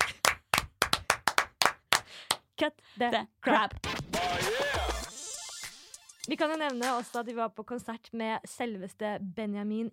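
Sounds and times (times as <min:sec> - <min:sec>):
hands clapping: 0:00.0 - 0:02.4
speech: 0:02.6 - 0:05.0, 0:06.3 - 0:09.9.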